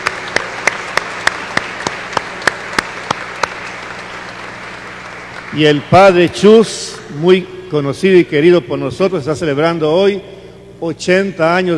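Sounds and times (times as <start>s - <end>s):
audience clapping in rhythm: 0.0s - 7.1s
speech: 5.5s - 11.7s.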